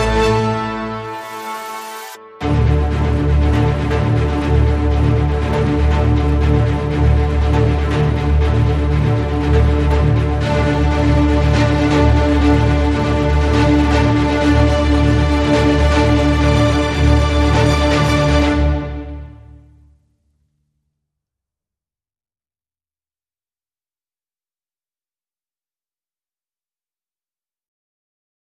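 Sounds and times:
strings playing: 0.0 - 19.5.

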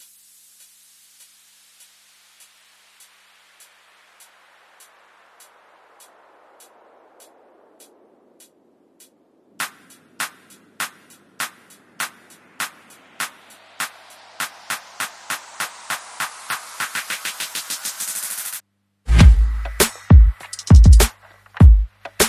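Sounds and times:
drums: 0.0 - 22.2
sound effects: 19.1 - 20.1.

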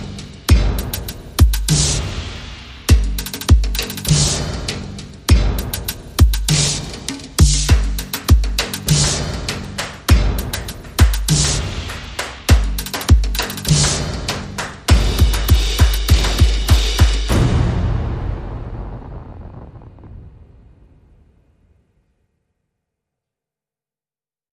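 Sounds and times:
drum beat: 0.0 - 17.5.

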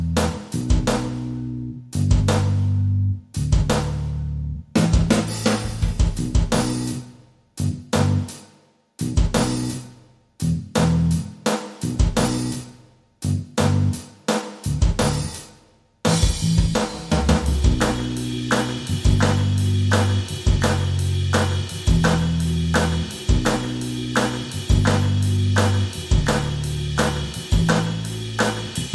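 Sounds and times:
bass: 0.0 - 8.4, 9.0 - 15.5, 16.1 - 28.9
drums: 0.0 - 28.9
clap: 0.2 - 1.3, 2.3 - 2.7, 3.7 - 4.1, 10.8 - 11.1, 17.0 - 28.9.

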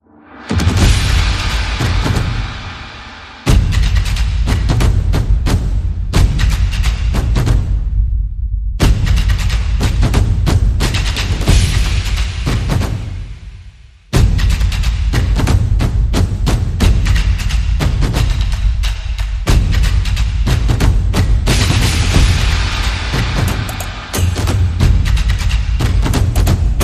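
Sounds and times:
percussion: 0.4 - 26.8.

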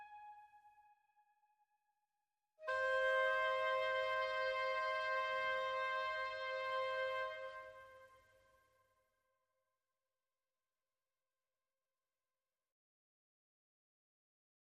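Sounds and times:
woodwinds playing: 2.6 - 7.9.

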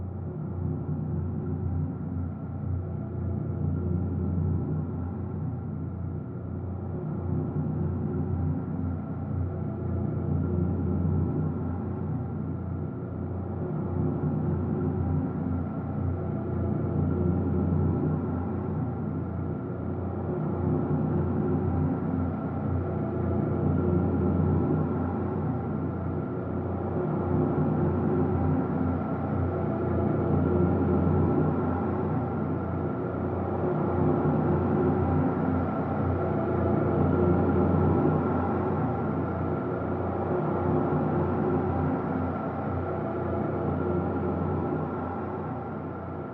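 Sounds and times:
simple drone in E: 0.1 - 46.3.

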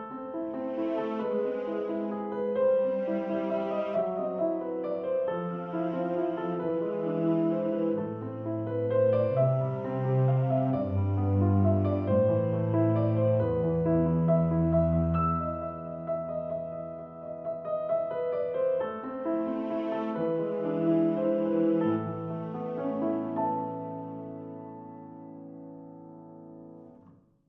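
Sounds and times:
strings: 0.2 - 17.5, 18.1 - 24.9.

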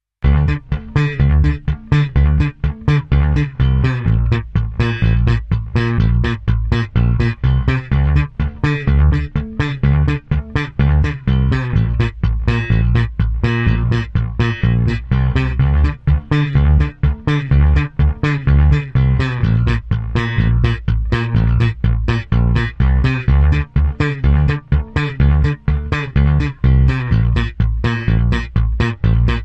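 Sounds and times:
dance bass: 0.2 - 29.4.

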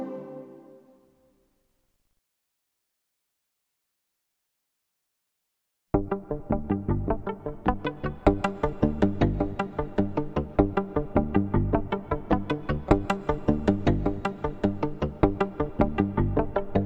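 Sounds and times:
rhythm: 5.9 - 16.8.

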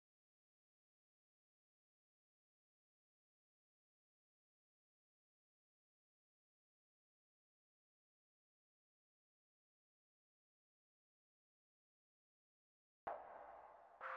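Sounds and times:
synthesizers: 13.1 - 14.1.

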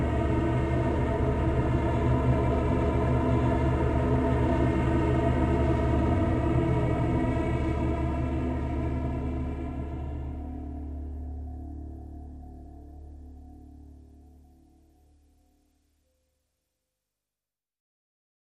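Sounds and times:
drones: 0.0 - 14.6.

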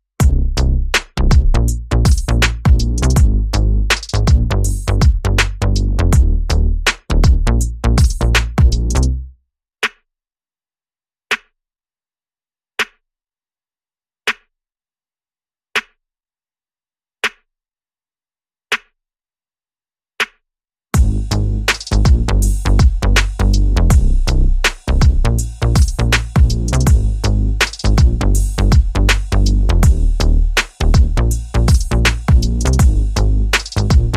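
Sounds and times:
drums: 0.2 - 9.1, 21.0 - 34.1
bass: 0.2 - 9.4, 21.0 - 34.1.

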